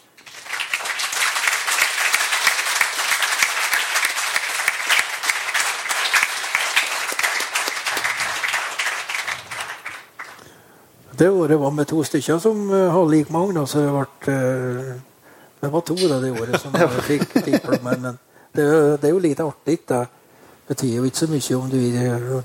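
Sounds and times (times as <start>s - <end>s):
audience applause: 0.0s - 10.4s
speech: 11.2s - 22.4s
laughter: 16.2s - 18.2s.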